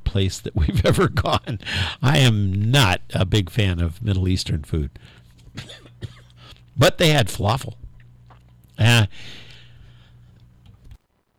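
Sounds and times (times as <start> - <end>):
speech: 0.1 - 6.1, 6.8 - 7.8, 8.8 - 9.4
person coughing: 5.6 - 6.4.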